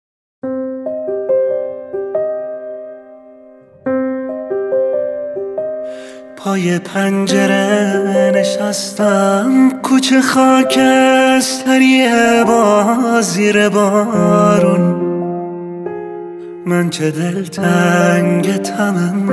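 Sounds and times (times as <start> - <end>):
piano: 0.4 - 19.3.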